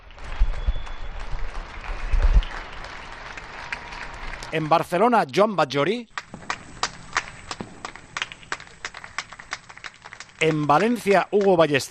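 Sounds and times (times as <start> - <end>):
people applauding from their homes: 0.0 - 5.4, 6.0 - 11.8
speech: 4.5 - 6.2, 10.4 - 11.8.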